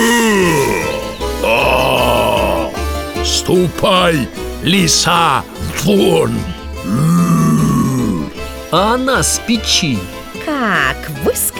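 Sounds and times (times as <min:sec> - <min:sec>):
voice imitating a bear's growl: 0:00.0 - 0:08.6
speech: 0:03.5 - 0:07.2, 0:08.7 - 0:11.5.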